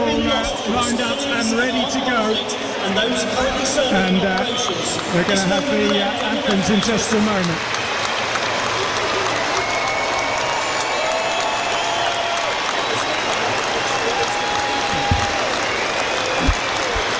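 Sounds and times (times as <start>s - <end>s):
stadium crowd applauding: 0.7s - 17.1s
speech: 0.8s - 7.8s
low thumps: 14.8s - 15.6s.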